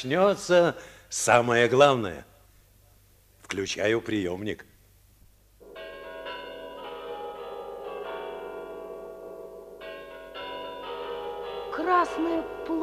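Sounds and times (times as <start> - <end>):
speech: 0.0 - 2.3, 3.5 - 4.7, 12.0 - 12.8
golden Kremlin clock chiming under the red star: 5.6 - 12.8.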